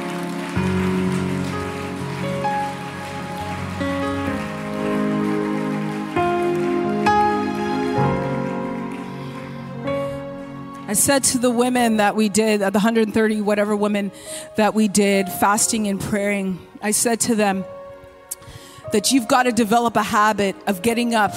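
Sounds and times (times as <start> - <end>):
audience clapping: 0.0 - 11.5
speech: 10.9 - 17.8, 18.9 - 21.3.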